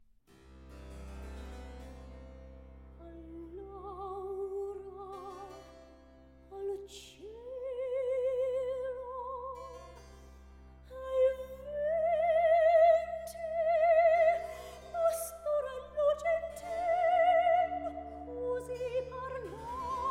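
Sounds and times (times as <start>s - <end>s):
baroque duet: 2.7s - 5.6s, 6.5s - 9.8s, 10.8s - 20.0s.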